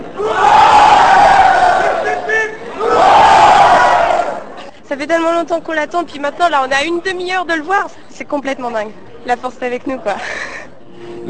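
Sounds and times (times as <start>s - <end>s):
crowd cheering entering cinema hall: 0.0s - 4.6s
high shouts: 0.1s - 4.5s
speech: 0.2s - 0.4s, 5.1s - 10.5s.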